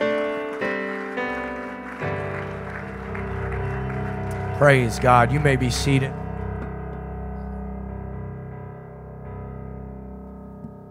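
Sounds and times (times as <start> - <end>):
audience clapping hands in praise: 0.0 - 6.2
speech: 4.6 - 6.2.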